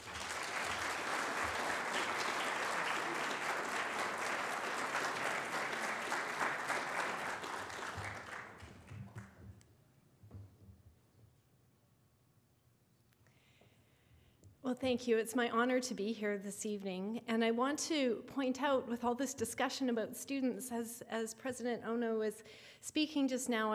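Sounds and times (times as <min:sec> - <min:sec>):
audience applause welcoming a speaker at a public lecture on wildfires in Victoria: 0:00.0 - 0:09.3
speech: 0:14.7 - 0:23.7.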